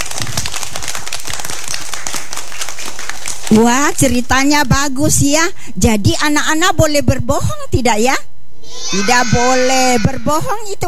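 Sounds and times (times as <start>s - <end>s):
group of children clapping hands: 0.0s - 3.6s
speech: 3.5s - 8.3s, 8.9s - 10.8s.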